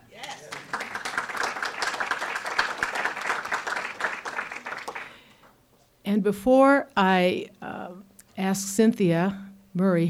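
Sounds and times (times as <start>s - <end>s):
audience applause welcoming a speaker: 0.2s - 5.3s
speech: 6.1s - 7.6s, 8.4s - 10.0s.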